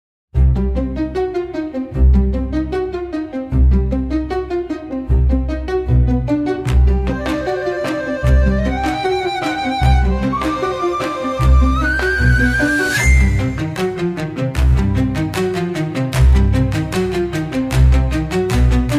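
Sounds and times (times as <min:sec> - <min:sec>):
bright playful magical cartoon comedy music: 0:00.4 - 0:18.9.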